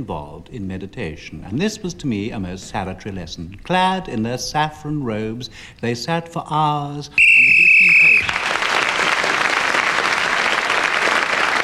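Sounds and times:
speech: 0.0 - 7.3
loud shrill whistle blast ending the round: 7.2 - 8.4
applause: 7.5 - 11.6.

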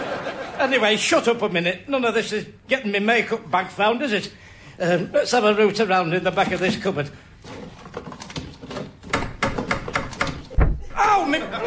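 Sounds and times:
laughter: 0.0 - 0.8, 11.0 - 11.6
speech: 0.6 - 7.6
knocking on a door: 9.1 - 10.8.

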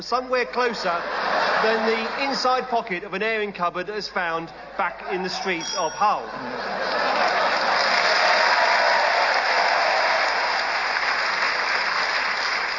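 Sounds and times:
speech: 0.0 - 7.0
laughter: 0.4 - 2.7, 4.5 - 8.8
spontaneous round of audience applause: 6.6 - 12.7.

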